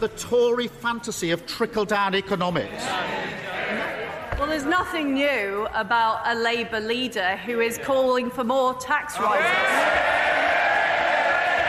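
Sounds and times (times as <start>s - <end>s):
speech: 0.0s - 3.4s, 4.4s - 10.0s
Tory MPs cheering in Parliament: 9.2s - 11.6s.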